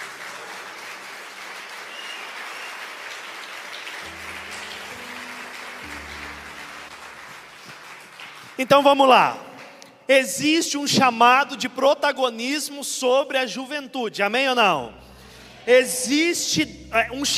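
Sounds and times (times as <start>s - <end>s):
audience applauding loudly: 0.0s - 9.9s
speech: 8.6s - 9.4s, 10.1s - 17.3s.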